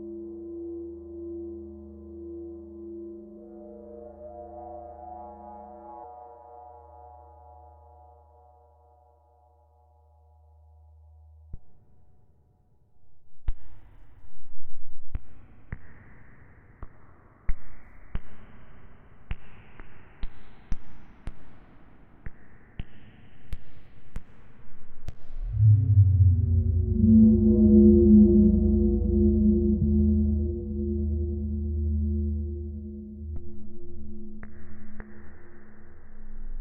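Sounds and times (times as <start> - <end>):
long hollow noises: 25.4 - 34.1.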